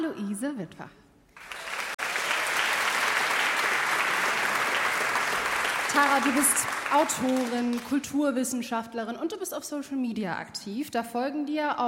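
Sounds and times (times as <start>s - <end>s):
speech: 0.2s - 1.0s, 6.0s - 11.8s
audience applause: 1.4s - 8.1s.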